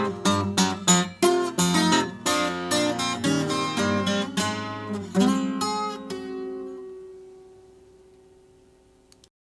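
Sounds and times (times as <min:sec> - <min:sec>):
autoharp: 0:00.0 - 0:07.6.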